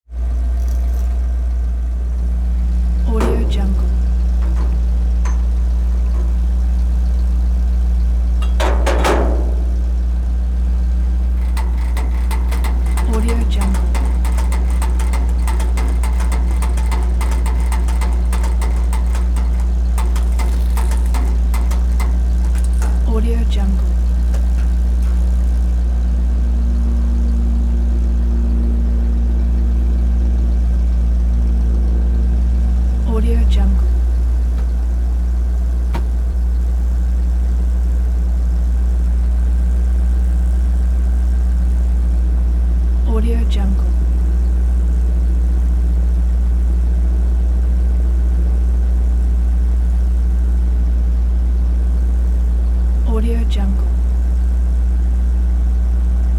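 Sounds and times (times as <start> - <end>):
truck idling: 0.0 - 56.3
truck fuel pump movement: 2.4 - 26.2.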